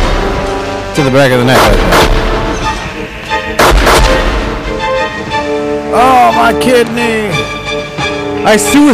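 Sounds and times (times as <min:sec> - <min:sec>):
gunshots: 0:00.0 - 0:04.8
speech: 0:01.0 - 0:02.3, 0:05.5 - 0:07.8, 0:08.4 - 0:08.9.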